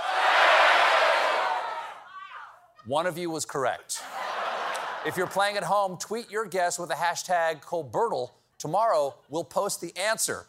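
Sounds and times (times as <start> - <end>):
studio audience shouting out guesses: 0.0 - 2.6
speech: 2.9 - 4.2, 5.0 - 10.4.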